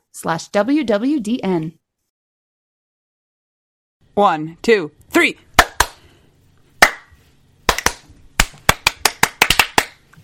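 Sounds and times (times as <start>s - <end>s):
speech: 0.2s - 1.8s, 4.2s - 5.4s
hand claps: 5.6s - 6.0s, 6.8s - 7.1s, 7.7s - 10.2s.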